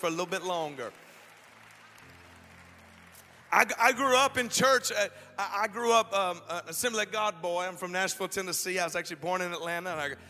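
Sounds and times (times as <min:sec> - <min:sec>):
speech: 0:00.0 - 0:01.1, 0:03.5 - 0:10.2
crowd clapping: 0:00.0 - 0:04.9.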